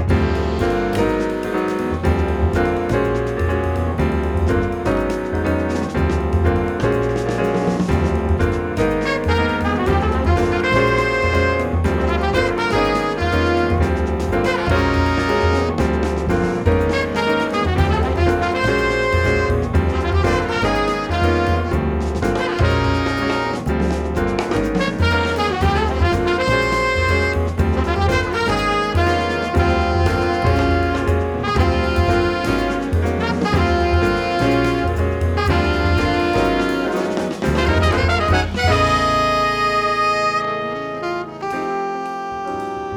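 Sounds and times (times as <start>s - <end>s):
sextet playing: 0.1s - 42.9s.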